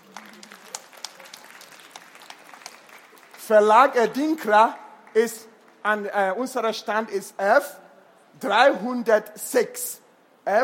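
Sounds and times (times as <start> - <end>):
audience applause: 0.0 - 3.9
speech: 3.5 - 7.8, 8.4 - 10.6.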